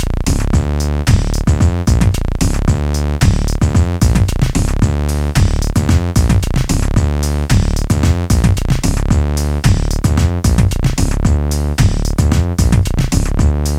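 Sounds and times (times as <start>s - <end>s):
MIDI music jam: 0.0s - 13.7s.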